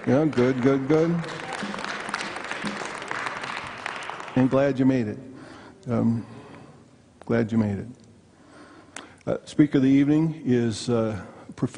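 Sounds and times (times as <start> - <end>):
speech: 0.0 - 1.4, 4.4 - 6.4, 7.3 - 8.0, 9.3 - 11.7
audience clapping: 0.0 - 4.9.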